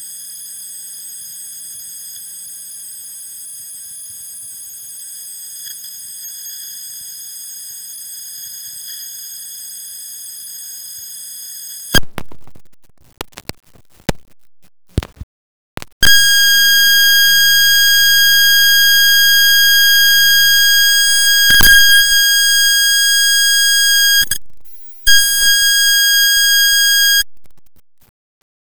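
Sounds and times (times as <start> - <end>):
amplifier: 15.8 - 28.1.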